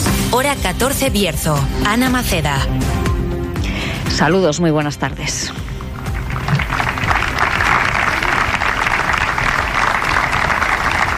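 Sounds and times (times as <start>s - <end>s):
speech: 0.4s - 3.0s, 4.1s - 5.6s
sustained applause from a large crowd at an outdoor gathering: 5.9s - 11.1s.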